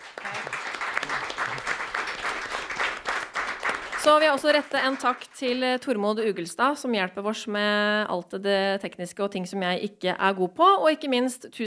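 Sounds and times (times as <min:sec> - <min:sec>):
audience applause: 0:00.0 - 0:05.5
speech: 0:04.0 - 0:11.6.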